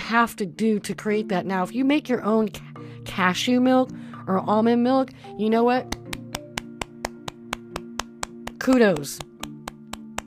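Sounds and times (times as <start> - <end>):
speech: 0.1 - 6.0, 8.7 - 9.3
golf clap: 5.9 - 10.2.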